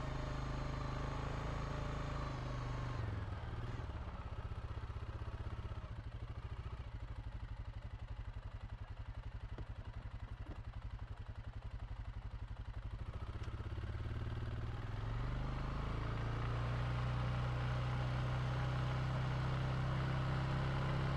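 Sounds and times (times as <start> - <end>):
2017 Suzuki KingQuad 750AXI quad bike engine starting, driving, reversing, stopping: 0.0 - 21.1.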